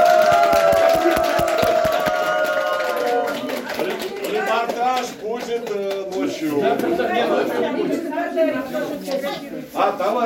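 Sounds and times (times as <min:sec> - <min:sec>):
audience clapping: 0:00.0 - 0:06.4
speech: 0:06.4 - 0:10.2.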